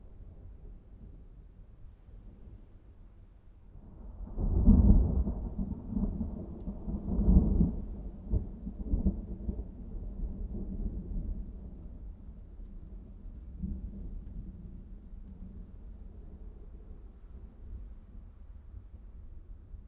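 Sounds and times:
very few rain drops: 1.8 - 19.8
thunder in a thunderstorm: 3.8 - 16.5.

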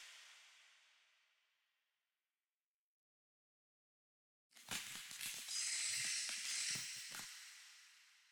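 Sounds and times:
cave ambience with pile of bones: 4.8 - 7.8.

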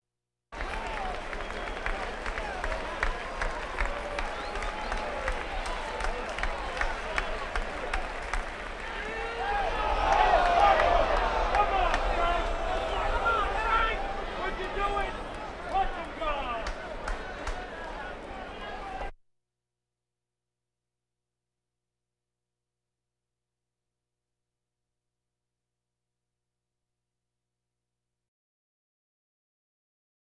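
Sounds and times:
crowds: 0.6 - 19.1.

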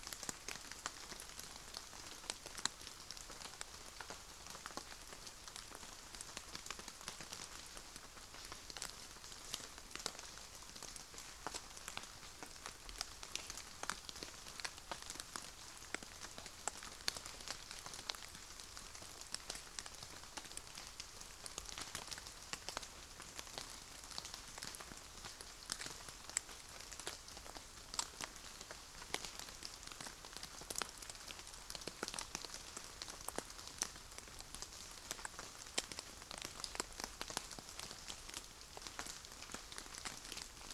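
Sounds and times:
light sparse rain patter after a thunderstorm: 0.0 - 40.7.

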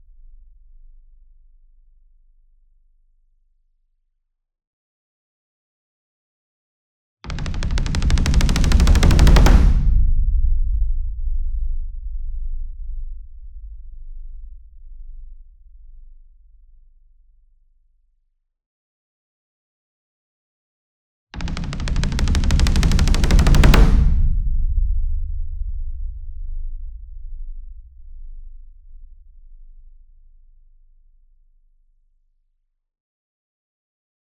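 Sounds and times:
60 inch taiko drum roll with hard beater: 7.3 - 11.2, 21.4 - 27.3.

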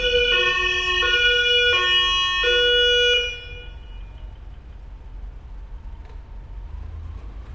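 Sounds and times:
police siren on a vehicle pulling away: 0.0 - 6.0.

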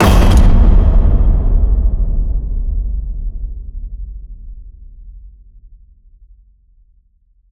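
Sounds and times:
cinematic metal crash hit: 0.0 - 3.4.

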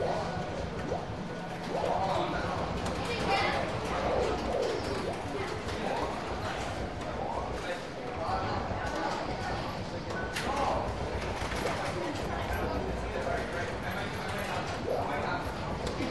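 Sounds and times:
small arcade video machines: 0.0 - 16.1.

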